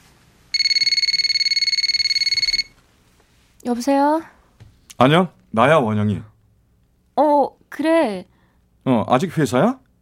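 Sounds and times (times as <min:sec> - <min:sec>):
telephone ringing with electronic trill: 0:00.5 - 0:02.8
speech: 0:03.6 - 0:04.4, 0:05.0 - 0:06.3, 0:07.2 - 0:09.8.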